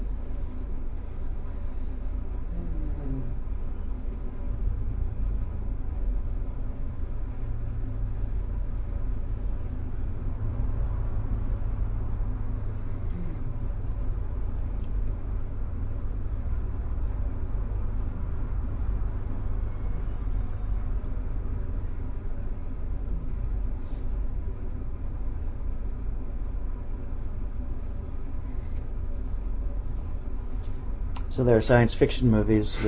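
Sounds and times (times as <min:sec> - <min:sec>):
air conditioning hum: 0:00.0 - 0:32.8
speech: 0:31.4 - 0:32.8.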